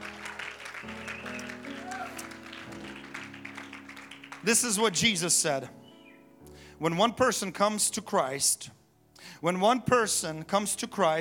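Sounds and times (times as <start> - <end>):
people clapping hands: 0.0 - 5.0
speech: 4.4 - 5.8, 6.8 - 11.1.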